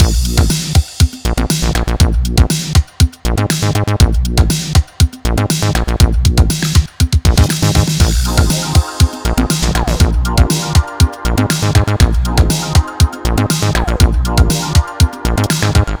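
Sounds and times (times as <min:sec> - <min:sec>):
nu dance electro music at 120 bpm: 0:00.0 - 0:15.9.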